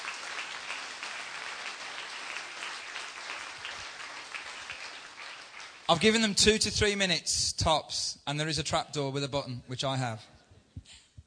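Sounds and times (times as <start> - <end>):
church congregation clapping: 0.0 - 6.9
speech: 5.9 - 10.3.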